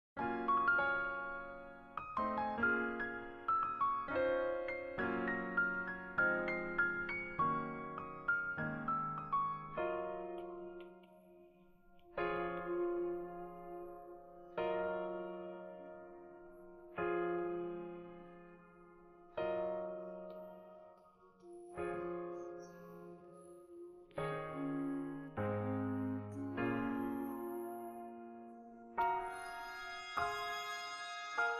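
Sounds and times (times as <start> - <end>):
instrumental music: 0.2 - 31.5.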